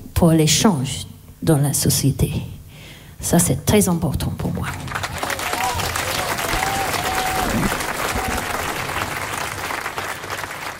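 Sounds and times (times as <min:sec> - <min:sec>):
speech: 0:00.2 - 0:02.6, 0:03.2 - 0:05.0, 0:07.6 - 0:07.8
audience clapping: 0:04.6 - 0:10.7.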